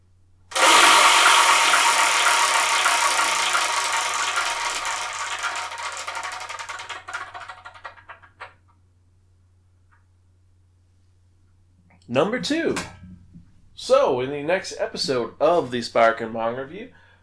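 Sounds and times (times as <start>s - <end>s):
prize wheel spun to pick the next manga title: 0.5s - 8.5s
speech: 12.1s - 13.0s, 13.9s - 17.0s.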